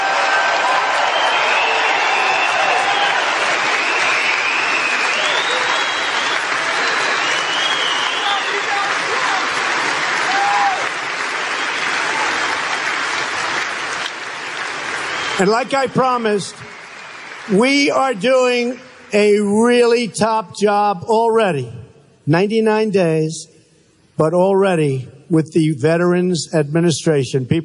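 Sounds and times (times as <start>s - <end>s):
audience applause for veterans: 0.0s - 19.4s
speech: 15.4s - 16.7s, 17.5s - 23.6s, 24.2s - 27.6s.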